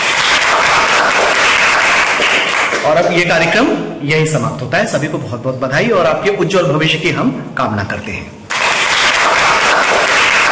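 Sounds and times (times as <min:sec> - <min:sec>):
audience applause for school quiz teams: 0:00.0 - 0:03.2, 0:08.5 - 0:10.5
speech: 0:02.8 - 0:08.4.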